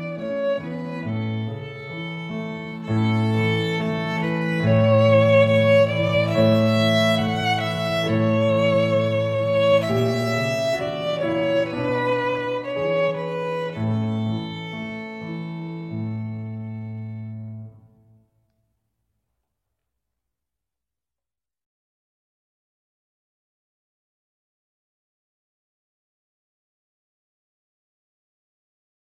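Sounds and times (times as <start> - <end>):
song in A major: 0.0 - 18.0.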